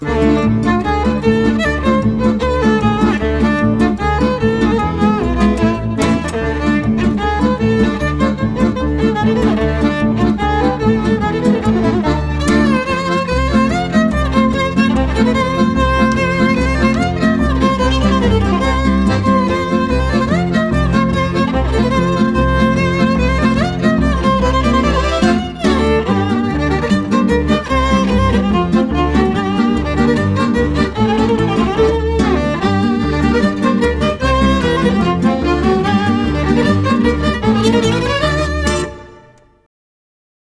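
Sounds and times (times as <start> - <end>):
klezmer nigun and freilach music: 0.0 - 39.6.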